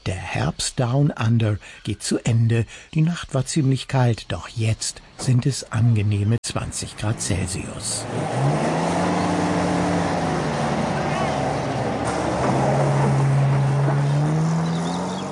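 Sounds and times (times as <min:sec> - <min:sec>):
speech: 0:00.0 - 0:08.9
off-road vehicle roaring over a dusty red dirt track: 0:06.9 - 0:15.3.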